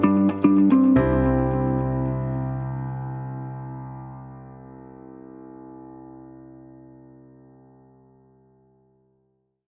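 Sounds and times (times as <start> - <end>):
uplifting corporate music: 0.0 - 2.3.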